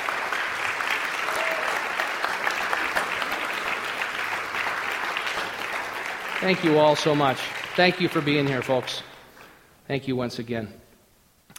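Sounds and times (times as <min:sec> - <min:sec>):
audience round of applause: 0:00.0 - 0:09.2
speech: 0:06.4 - 0:09.1, 0:09.9 - 0:10.8.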